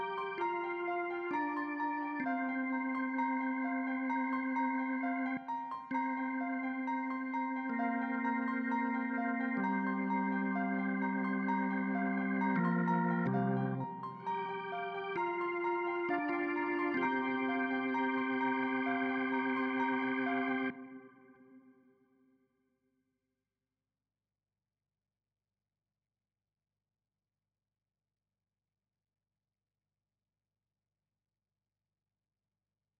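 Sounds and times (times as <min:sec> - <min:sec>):
synths and keys: 0:00.0 - 0:21.7.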